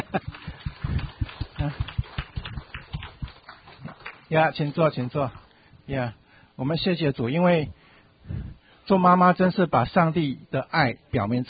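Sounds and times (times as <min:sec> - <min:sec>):
audience applauding mothers: 0:00.0 - 0:05.5
speech: 0:00.1 - 0:00.4, 0:01.6 - 0:01.8, 0:04.3 - 0:07.8, 0:08.9 - 0:11.4.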